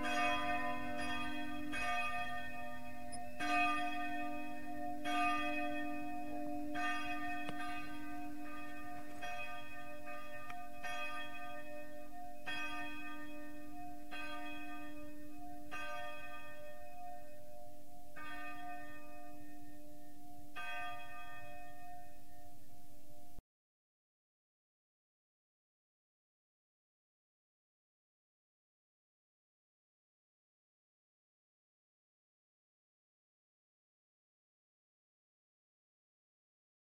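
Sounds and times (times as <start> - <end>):
bells ringing in Marienrode: 0.0 - 23.4.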